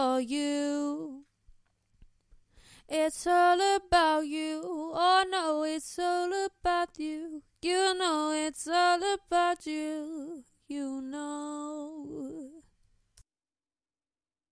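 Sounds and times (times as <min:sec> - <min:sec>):
a cappella pop singing in B-flat minor: 0:00.0 - 0:01.3, 0:02.9 - 0:12.7.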